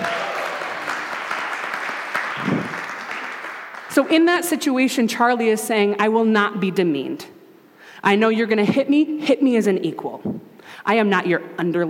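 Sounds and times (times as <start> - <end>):
audience applause: 0.0 - 3.9
speech: 4.0 - 7.4, 8.0 - 11.8.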